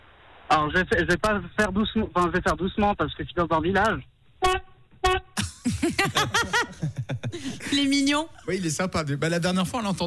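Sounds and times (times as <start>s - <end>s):
speech: 0.5s - 4.6s, 5.9s - 6.7s, 7.3s - 10.0s
truck horn honking: 4.4s - 5.4s
laughter: 5.4s - 7.9s.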